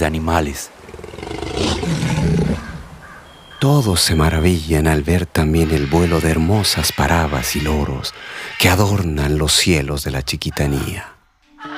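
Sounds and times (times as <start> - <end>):
speech: 0.0 - 2.4, 3.6 - 11.1
big cat roar: 0.8 - 3.0.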